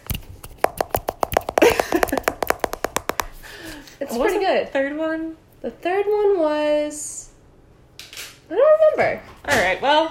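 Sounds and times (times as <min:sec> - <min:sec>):
hands clapping: 0:00.6 - 0:03.4
speech: 0:04.1 - 0:07.1, 0:08.5 - 0:10.0.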